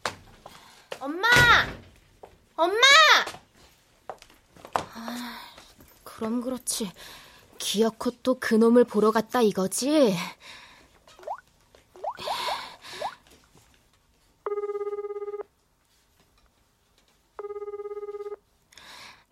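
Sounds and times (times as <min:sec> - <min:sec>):
speech: 0:01.0 - 0:01.8, 0:02.6 - 0:03.4, 0:06.2 - 0:10.6
telephone ringing unanswered: 0:14.5 - 0:15.5, 0:17.4 - 0:18.4.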